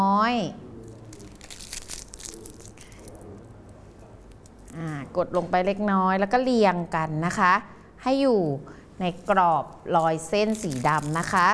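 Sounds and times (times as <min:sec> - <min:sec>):
speech: 0:00.0 - 0:00.6, 0:04.8 - 0:11.5
paper crumpling: 0:00.8 - 0:03.2, 0:10.4 - 0:11.5.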